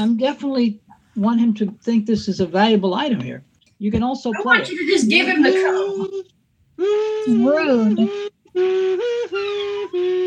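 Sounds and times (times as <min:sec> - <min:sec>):
speech: 0:00.0 - 0:10.2
person whistling a tune: 0:06.8 - 0:10.2.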